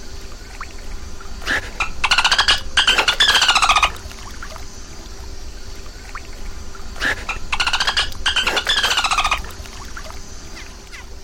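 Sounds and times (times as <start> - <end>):
dolphin squeaking calls at night: 1.8 - 4.0, 7.2 - 9.5.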